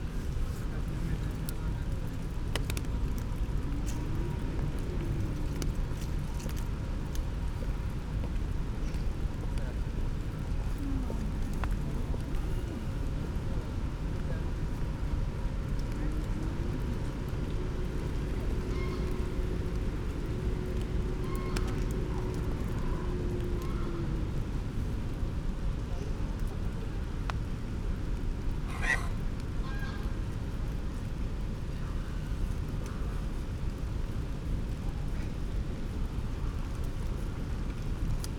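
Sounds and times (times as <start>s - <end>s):
rain: 0.0s - 38.3s
people passing: 10.8s - 24.4s
goose vocalisations: 18.3s - 19.8s
crow calls: 18.6s - 19.8s, 28.7s - 30.1s.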